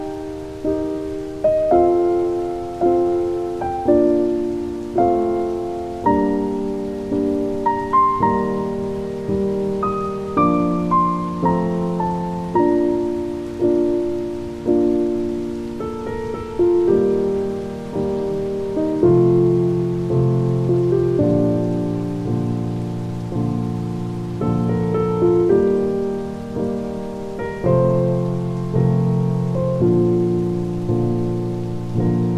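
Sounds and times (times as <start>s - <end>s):
healing music: 0.0s - 32.3s
rain: 0.0s - 32.3s.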